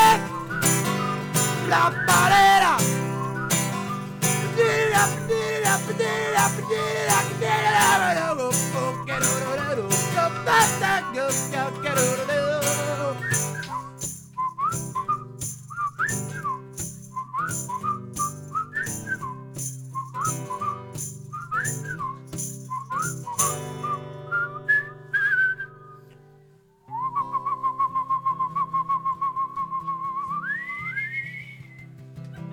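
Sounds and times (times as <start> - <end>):
rhythmic musical backing: 0.0 - 13.5
group of people whistling a bouncy melody in unison: 0.0 - 26.2, 26.8 - 32.2
speech: 1.7 - 2.5.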